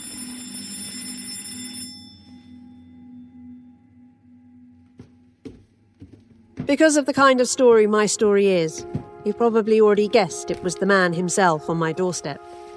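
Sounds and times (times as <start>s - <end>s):
doorbell ringing with a bright buzzing electric tone: 0.0s - 3.1s
low lingering hum: 2.2s - 6.7s
speech: 6.7s - 12.6s.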